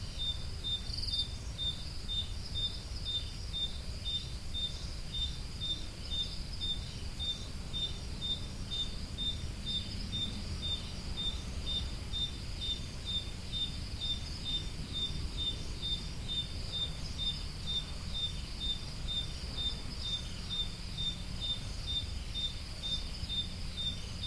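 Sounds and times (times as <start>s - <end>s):
crickets chirping at Roodekopjes: 0.0s - 24.2s.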